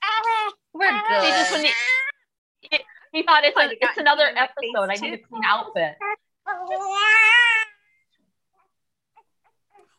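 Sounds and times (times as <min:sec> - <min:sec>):
baby screaming: 0:00.0 - 0:02.1, 0:06.0 - 0:07.8
speech: 0:00.9 - 0:02.0, 0:02.7 - 0:07.4.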